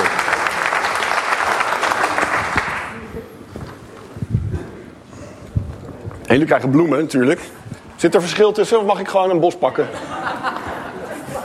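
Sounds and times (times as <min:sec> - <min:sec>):
crowd applause: 0:00.0 - 0:03.1
speech: 0:06.3 - 0:10.2
laughter: 0:09.7 - 0:11.4.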